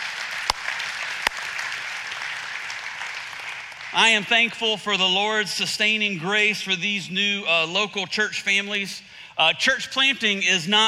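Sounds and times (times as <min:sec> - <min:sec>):
audience clapping for church anniversaries: 0:00.0 - 0:04.8
speech: 0:03.9 - 0:10.8.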